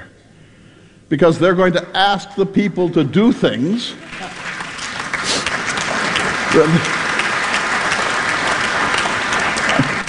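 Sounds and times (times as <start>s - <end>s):
speech: 1.1s - 4.4s, 6.5s - 7.0s
audience applause during a political speech: 4.0s - 10.0s.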